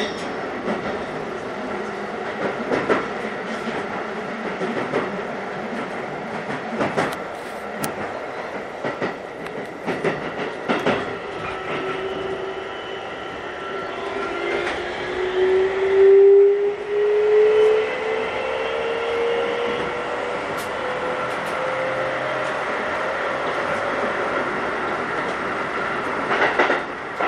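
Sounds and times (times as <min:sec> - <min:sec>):
rail clicks and thumps: 0:00.0 - 0:12.5, 0:19.2 - 0:27.2
Keikyu New 1000 series aluminum train running on rails: 0:00.0 - 0:27.2
rising train motor whine: 0:12.0 - 0:23.6.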